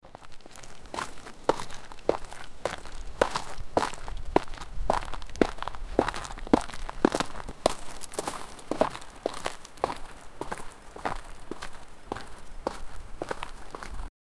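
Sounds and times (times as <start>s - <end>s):
person running down a hill: 0.0s - 14.1s.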